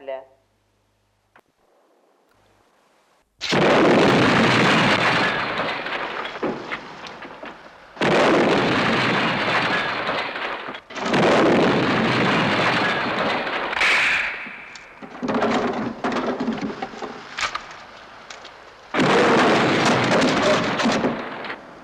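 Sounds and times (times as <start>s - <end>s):
grenade explosion: 3.4s - 17.6s, 18.9s - 21.8s.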